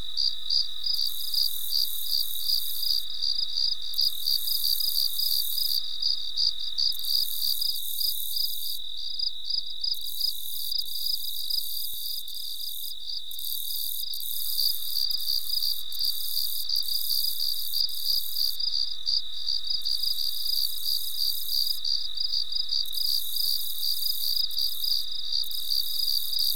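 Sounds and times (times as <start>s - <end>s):
cricket chirping: 0.0s - 26.5s.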